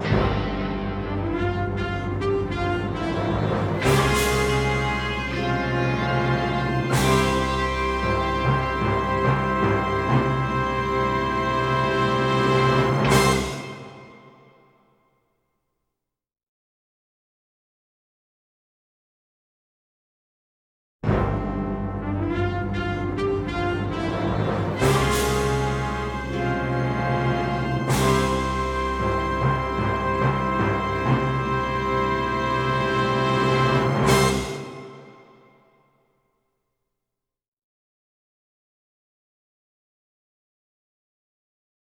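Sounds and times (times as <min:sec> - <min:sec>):
instrumental fanfare: 0:00.1 - 0:14.4, 0:21.1 - 0:35.5.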